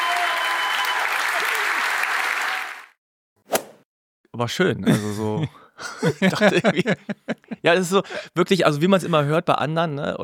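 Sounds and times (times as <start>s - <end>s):
audience applause: 0.0s - 3.0s
speech: 4.4s - 10.2s
laughter: 4.9s - 8.2s.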